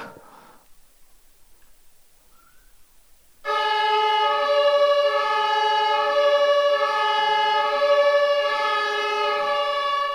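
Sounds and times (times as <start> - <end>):
German Martinshorn emergency vehicle siren: 3.4 - 10.1.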